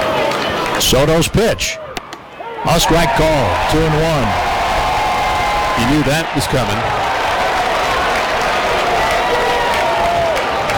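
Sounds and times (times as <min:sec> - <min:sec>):
speech: 0:00.8 - 0:01.8, 0:02.6 - 0:04.6, 0:05.8 - 0:07.2
fake crowd applause: 0:02.8 - 0:10.7.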